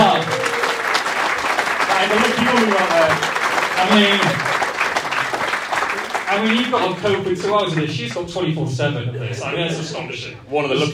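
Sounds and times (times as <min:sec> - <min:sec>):
live audience applause: 0:00.0 - 0:08.1
speech: 0:02.0 - 0:04.6, 0:06.4 - 0:10.9.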